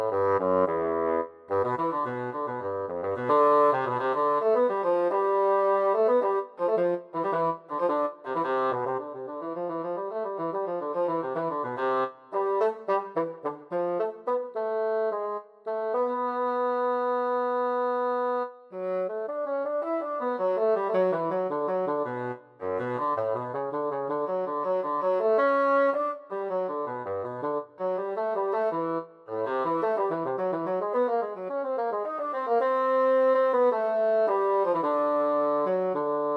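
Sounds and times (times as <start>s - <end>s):
solo bassoon: 0.0s - 36.3s.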